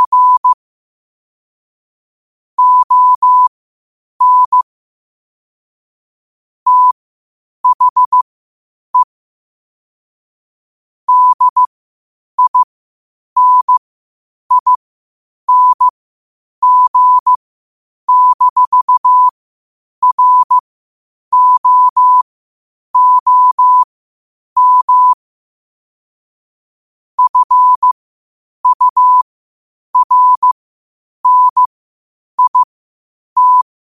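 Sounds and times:
morse code at 5 wpm: 0.0s - 0.6s, 2.6s - 3.5s, 4.2s - 4.7s, 6.7s - 7.0s, 7.6s - 8.2s, 11.1s - 11.7s, 12.4s - 12.7s, 13.4s - 13.8s, 14.5s - 14.8s, 15.5s - 15.9s, 16.6s - 17.3s, 18.1s - 19.3s, 20.0s - 20.6s, 21.3s - 22.2s, 23.0s - 23.9s, 24.6s - 25.2s, 27.2s - 28.0s, 28.6s - 29.2s, 30.0s - 30.6s, 31.2s - 31.7s, 32.4s - 32.7s, 33.4s - 33.7s.

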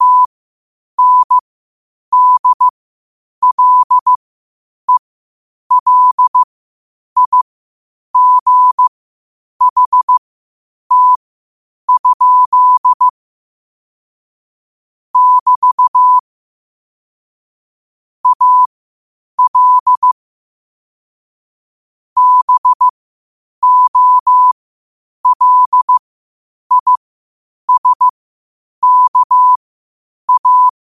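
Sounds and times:
morse code at 5 wpm: 0.0s - 0.3s, 1.0s - 1.4s, 2.1s - 2.7s, 3.4s - 4.2s, 5.7s - 6.5s, 7.2s - 7.4s, 8.2s - 8.9s, 9.6s - 10.2s, 10.9s - 11.2s, 11.9s - 13.1s, 15.2s - 16.2s, 18.2s - 18.7s, 19.4s - 20.2s, 22.2s - 22.9s, 23.6s - 24.6s, 25.2s - 26.0s, 26.7s - 27.0s, 27.7s - 28.1s, 28.8s - 29.6s, 30.3s - 30.8s.

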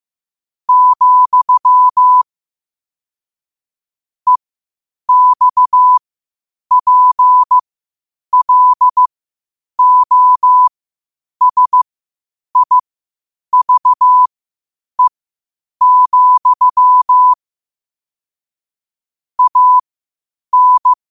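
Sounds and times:
morse code at 5 wpm: 0.7s - 2.2s, 5.1s - 6.0s, 6.7s - 7.6s, 8.3s - 9.1s, 9.8s - 10.7s, 11.4s - 11.8s, 12.6s - 12.8s, 13.5s - 14.3s, 15.8s - 17.4s, 19.4s - 19.8s, 20.5s - 21.0s.

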